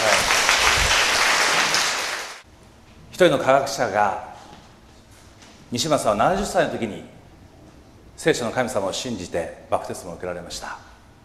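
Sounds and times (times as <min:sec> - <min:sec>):
audience applause: 0:00.0 - 0:02.4
speech: 0:03.2 - 0:04.3, 0:05.7 - 0:07.2, 0:08.2 - 0:10.9.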